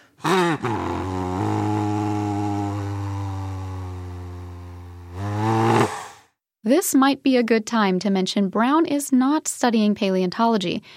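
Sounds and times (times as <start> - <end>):
air blown through replica dinosaur skull: 0.0 - 6.3
speech: 0.2 - 0.8, 6.7 - 10.9.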